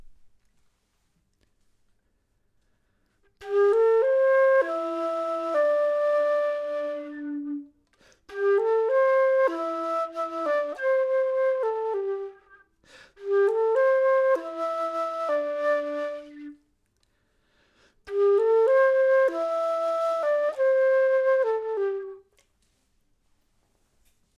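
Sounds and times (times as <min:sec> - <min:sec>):
flute: 0:03.3 - 0:16.7, 0:18.0 - 0:22.5.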